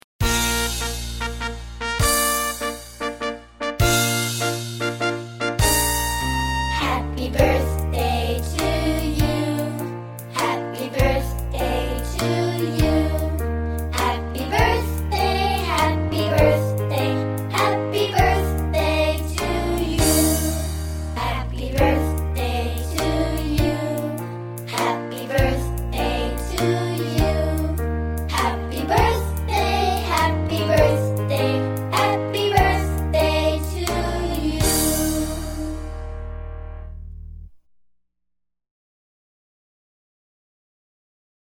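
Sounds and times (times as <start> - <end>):
party song: 0.2 - 36.2.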